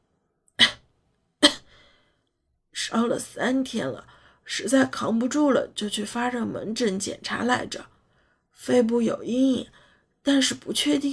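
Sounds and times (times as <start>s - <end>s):
feverish patient in isolation at Xuanwu Hospital coughing: 0.6s - 0.8s, 1.4s - 1.8s
speech: 2.9s - 7.9s, 8.6s - 11.1s.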